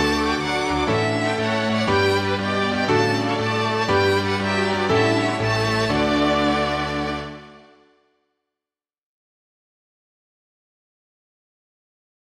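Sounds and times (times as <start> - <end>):
anthem music: 0.0 - 7.9.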